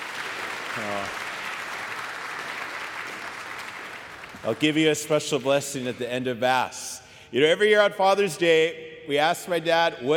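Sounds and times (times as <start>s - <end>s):
audience applause: 0.0s - 4.8s
speech: 0.8s - 1.2s, 4.4s - 10.1s.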